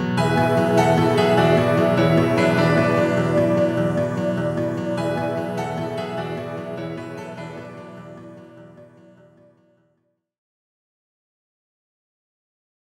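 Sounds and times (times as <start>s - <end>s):
chiptune music: 0.2s - 8.8s.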